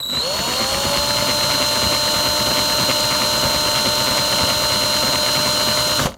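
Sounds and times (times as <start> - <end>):
drill: 0.0 - 6.1.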